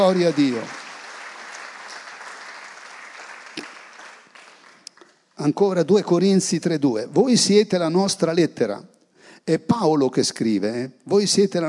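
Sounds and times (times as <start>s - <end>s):
speech: 0.0s - 0.8s, 5.4s - 11.6s
audience applauding: 0.0s - 5.0s.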